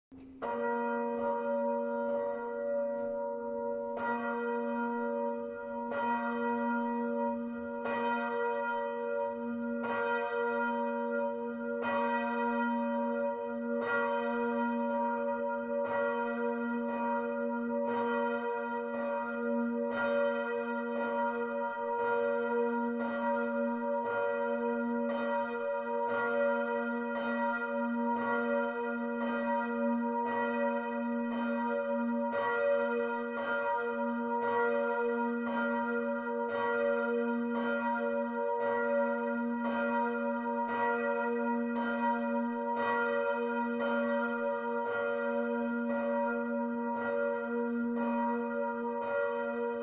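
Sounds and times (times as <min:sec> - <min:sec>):
bell: 0:00.1 - 0:49.8.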